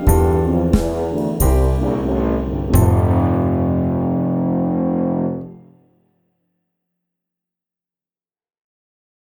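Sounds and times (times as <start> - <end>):
tuba melody: 0.0 - 5.8.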